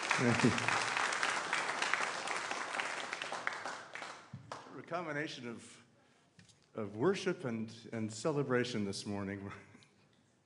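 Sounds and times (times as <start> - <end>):
concert audience applause: 0.0 - 4.7
speech: 0.2 - 0.9, 4.9 - 5.8, 6.8 - 9.7.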